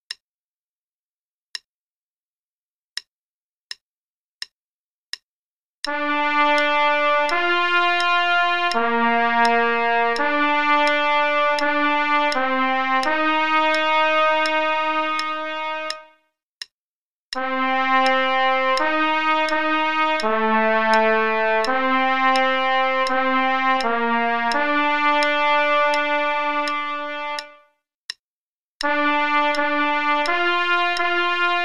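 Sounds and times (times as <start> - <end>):
trumpet play-along: 5.9 - 16.2, 17.4 - 27.7, 28.8 - 31.6.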